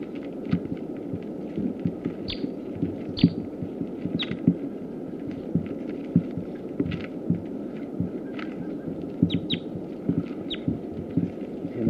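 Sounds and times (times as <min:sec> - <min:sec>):
low rumbling hum and throbbing noise: 0:00.0 - 0:11.8
male sitkensis bird giving short high chirping calls: 0:02.2 - 0:03.5, 0:04.1 - 0:04.4, 0:08.1 - 0:10.7.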